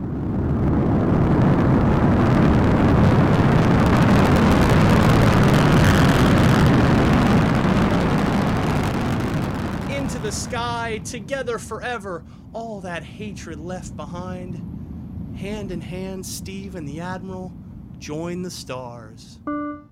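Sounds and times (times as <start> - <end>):
rocket blasting off: 0.0 - 15.9
speech: 11.6 - 14.8, 15.4 - 19.6.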